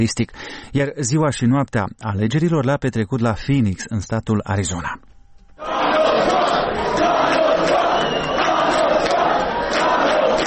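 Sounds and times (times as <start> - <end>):
speech: 0.0 - 5.0
crowd cheering at election night celebration: 5.6 - 10.4.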